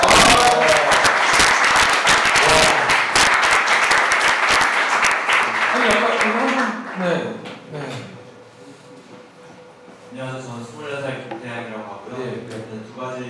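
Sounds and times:
audience applause: 0.0 - 7.2.

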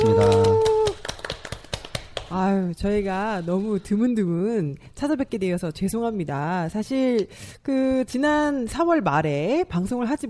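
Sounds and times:
applause: 0.0 - 2.4
speech: 2.4 - 10.2.

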